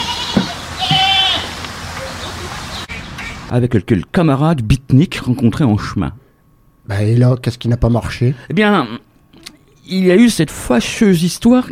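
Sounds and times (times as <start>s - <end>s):
goat bleating on a farm in the Alps: 0.0s - 1.6s
low hum: 0.0s - 11.6s
speech: 3.5s - 6.2s, 6.9s - 9.1s, 9.9s - 11.6s.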